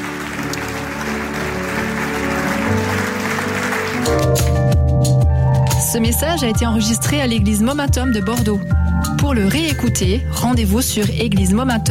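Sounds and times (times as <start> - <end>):
audience applauding: 0.0 - 4.8
speech: 6.0 - 11.8.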